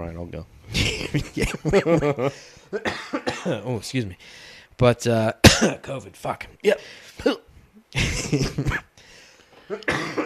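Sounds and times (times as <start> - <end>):
speech: 0.0 - 8.9
laughter: 0.8 - 2.5
person coughing after whiskey went down the wrong way: 2.8 - 3.6, 5.4 - 5.8, 8.0 - 8.9, 9.7 - 10.2.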